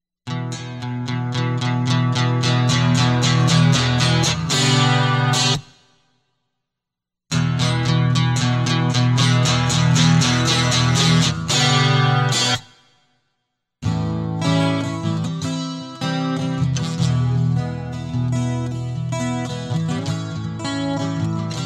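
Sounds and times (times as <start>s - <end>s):
guitar loop: 0.3s - 5.8s, 7.3s - 12.8s, 13.8s - 21.6s.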